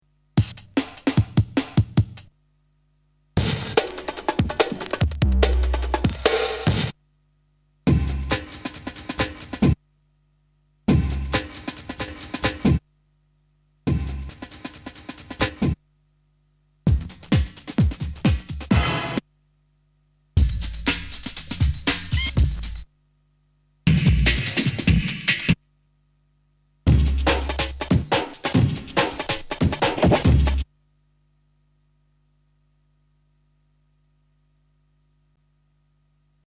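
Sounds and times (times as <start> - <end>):
breakbeat drums: 0.4 - 2.3, 3.4 - 7.0, 7.9 - 9.8, 10.9 - 12.8, 13.9 - 15.8, 16.9 - 19.2, 20.4 - 22.9, 23.9 - 25.6, 26.9 - 30.7.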